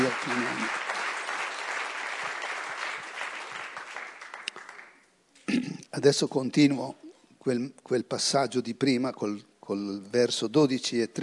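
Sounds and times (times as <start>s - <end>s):
audience applause: 0.0s - 5.0s
speech: 6.0s - 11.2s.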